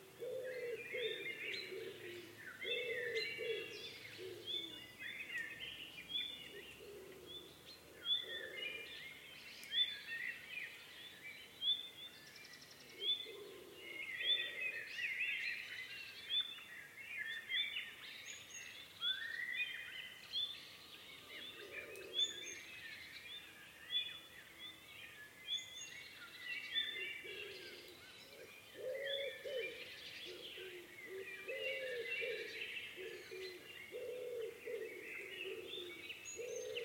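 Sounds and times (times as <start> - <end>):
dusk biophony: 0.0 - 36.8.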